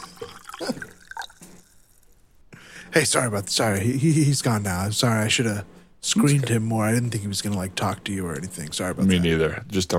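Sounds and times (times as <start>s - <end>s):
water splashing into a water bottle as it is filled: 0.0s - 2.1s
speech: 2.9s - 9.9s.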